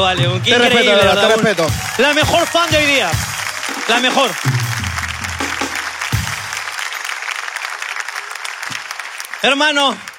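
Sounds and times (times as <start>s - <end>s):
speech: 0.0s - 3.3s, 3.9s - 4.7s, 9.4s - 10.1s
applause: 0.6s - 10.1s.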